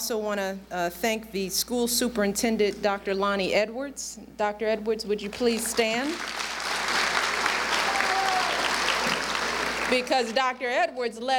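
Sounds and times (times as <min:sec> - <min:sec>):
speech: 0:00.1 - 0:06.4, 0:09.9 - 0:11.3
crowd applauding: 0:05.5 - 0:10.5.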